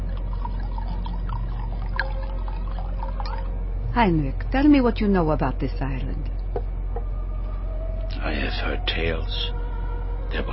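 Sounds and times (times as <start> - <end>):
wine pouring into a glass: 0.0 - 3.6
low rumble: 0.0 - 10.5
speech: 4.0 - 6.3, 8.3 - 9.6, 10.3 - 10.5.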